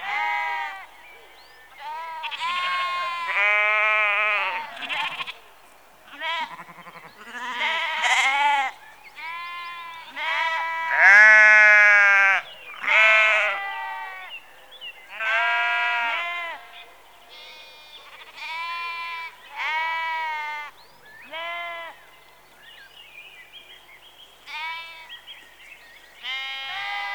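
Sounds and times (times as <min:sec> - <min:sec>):
sheep bleating in a rural setting: 0:00.0 - 0:00.8, 0:01.8 - 0:05.4, 0:06.1 - 0:14.3, 0:15.2 - 0:16.7, 0:17.3 - 0:20.7, 0:21.3 - 0:22.0, 0:24.5 - 0:25.1, 0:26.2 - 0:27.1.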